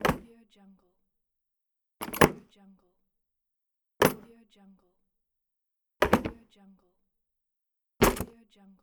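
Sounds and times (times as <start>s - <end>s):
toolbox closing: 0.0s - 0.2s, 2.0s - 2.4s, 6.0s - 6.4s, 8.0s - 8.3s.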